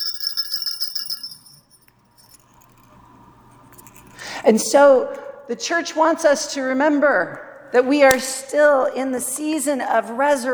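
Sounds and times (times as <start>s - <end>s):
small jingling alleluia bells: 0.0s - 2.6s
speech: 4.5s - 10.5s.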